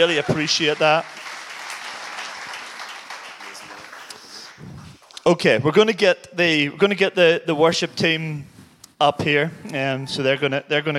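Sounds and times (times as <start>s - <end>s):
speech: 0.0s - 1.2s, 5.2s - 10.9s
audience applause: 0.0s - 4.7s.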